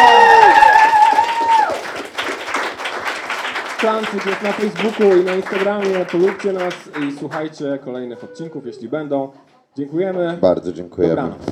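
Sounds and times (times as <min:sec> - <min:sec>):
audience applause: 0:00.0 - 0:07.6
speech: 0:03.9 - 0:11.5.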